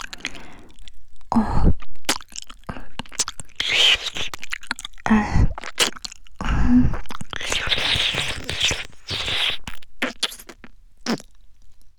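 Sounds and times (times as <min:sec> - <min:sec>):
ear licking on the left: 0:02.1 - 0:11.2.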